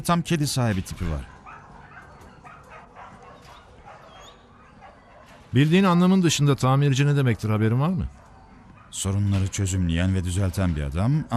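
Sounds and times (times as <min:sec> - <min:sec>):
speech: 0:00.0 - 0:01.3, 0:05.5 - 0:08.2, 0:08.9 - 0:11.3
dogs barking at an animal shelter: 0:01.0 - 0:06.0, 0:07.8 - 0:09.2.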